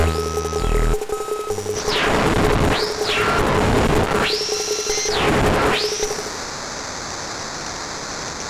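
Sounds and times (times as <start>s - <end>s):
acid drum machine beat: 0.0s - 6.2s.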